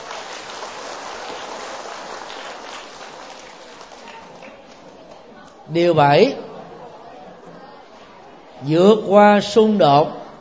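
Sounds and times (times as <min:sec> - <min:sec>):
crowd applauding: 0:00.0 - 0:05.3
speech: 0:05.7 - 0:06.5, 0:08.6 - 0:10.2.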